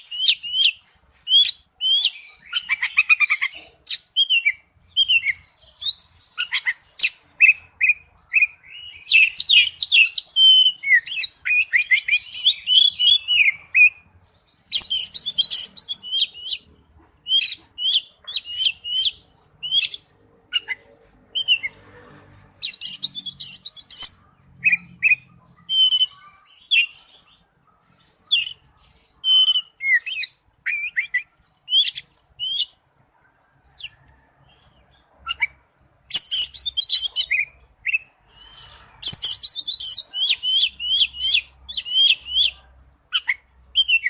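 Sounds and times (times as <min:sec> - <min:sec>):
Oriental magpie-robin song: 0:00.0 - 0:20.8, 0:21.4 - 0:21.8, 0:22.6 - 0:27.4, 0:28.2 - 0:32.8, 0:35.3 - 0:44.0.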